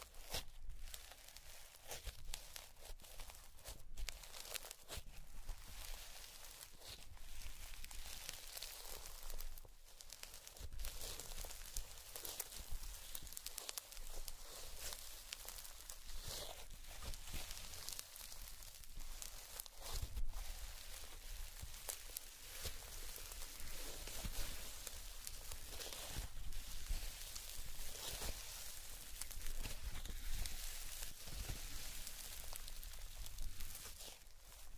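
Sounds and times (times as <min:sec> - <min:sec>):
sticky slime crackling and squelching: 0:00.2 - 0:34.7.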